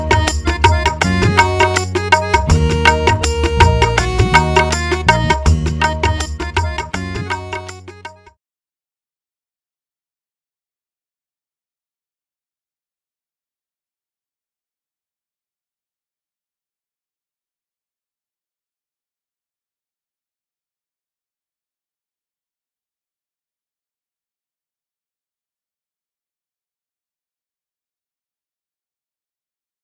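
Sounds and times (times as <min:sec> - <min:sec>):
karaoke singing: 0:00.0 - 0:07.6.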